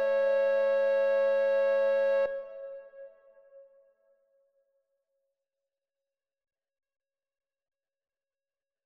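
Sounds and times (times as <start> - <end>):
various flutes playing in two voices: 0.0 - 3.0.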